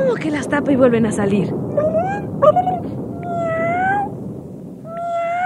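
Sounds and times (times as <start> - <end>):
speech: 0.1 - 3.0
cats meowing: 3.2 - 4.1, 4.9 - 5.4.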